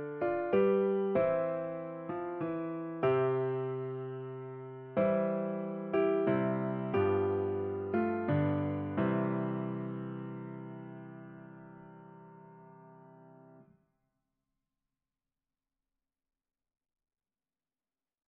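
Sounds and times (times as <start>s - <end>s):
Christmas carol on piano: 0.0s - 13.6s.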